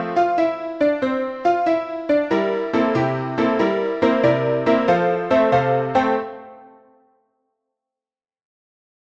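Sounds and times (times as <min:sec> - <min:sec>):
piano: 0:00.0 - 0:07.2.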